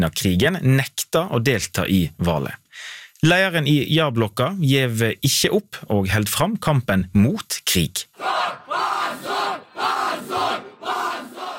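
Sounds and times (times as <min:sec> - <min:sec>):
speech: 0:00.0 - 0:10.6
protesters chanting shame outside the supreme court in Moscow: 0:08.2 - 0:11.5.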